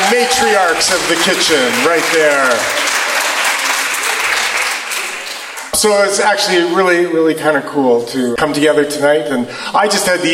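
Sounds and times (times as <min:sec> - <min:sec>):
applause from people at a get-together: 0:00.0 - 0:05.9
speech: 0:00.1 - 0:02.9, 0:05.8 - 0:10.3.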